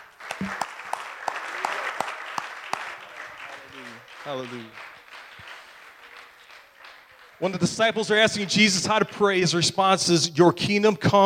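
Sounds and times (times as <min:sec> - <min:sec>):
audience hand clapping: 0:00.0 - 0:09.0
speech: 0:04.2 - 0:04.9, 0:07.4 - 0:11.2.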